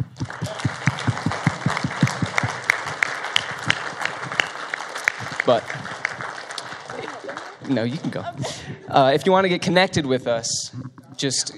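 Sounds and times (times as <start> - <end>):
audience clapping for newcomers: 0.0 - 8.6
speech: 5.5 - 5.8, 7.7 - 11.5
laughter: 6.8 - 9.3.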